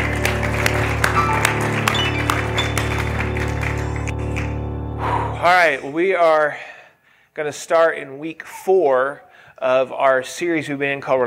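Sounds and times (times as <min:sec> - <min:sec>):
audience applause: 0:00.0 - 0:04.7
speech: 0:05.4 - 0:06.7, 0:07.4 - 0:11.2.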